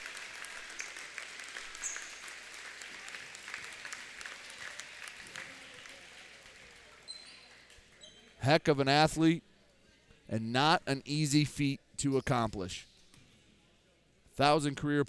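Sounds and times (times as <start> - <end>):
crowd standing ovation applause: 0.0 - 7.1
speech: 8.4 - 9.5, 10.3 - 12.9, 14.4 - 15.0.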